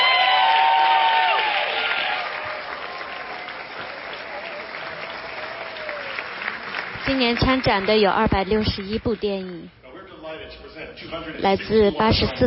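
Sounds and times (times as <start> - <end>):
faint whoops: 0.0 - 6.3
audience applause: 0.0 - 9.6
speech: 7.2 - 9.8, 10.4 - 12.4.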